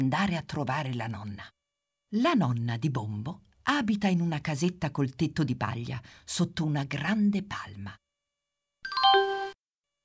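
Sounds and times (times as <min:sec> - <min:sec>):
speech: 0:00.0 - 0:08.0
doorbell chime at a small thatched-roof cottage: 0:08.9 - 0:09.6.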